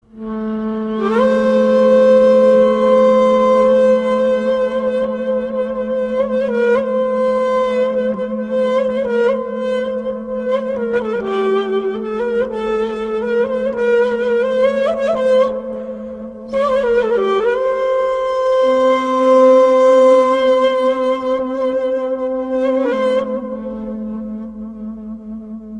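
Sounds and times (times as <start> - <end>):
ney flute: 0.2 - 25.7.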